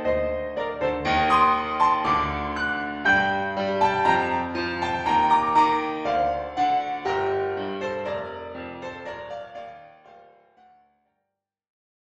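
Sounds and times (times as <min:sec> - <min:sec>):
G minor fantasia solo: 0:00.0 - 0:09.3.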